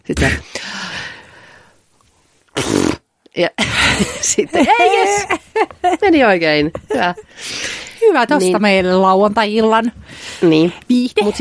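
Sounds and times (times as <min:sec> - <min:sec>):
speech: 0:00.0 - 0:00.5, 0:03.4 - 0:11.4
fart: 0:02.5 - 0:03.1
laughter: 0:03.6 - 0:08.1.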